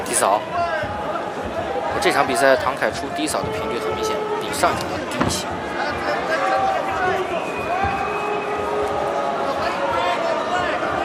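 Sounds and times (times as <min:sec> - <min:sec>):
crowd booing: 0:00.0 - 0:11.0
speech: 0:00.2 - 0:00.7, 0:02.0 - 0:05.7.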